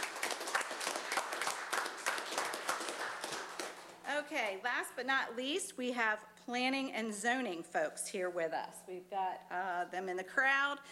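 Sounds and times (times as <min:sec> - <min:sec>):
audience applause: 0:00.0 - 0:03.9
speech: 0:04.3 - 0:10.9.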